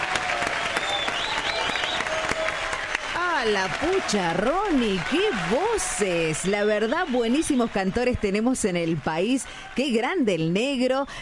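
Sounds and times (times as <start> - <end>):
faint cheering whistles: 0.0 - 8.6
audience applause: 0.0 - 11.1
speech: 3.4 - 11.1.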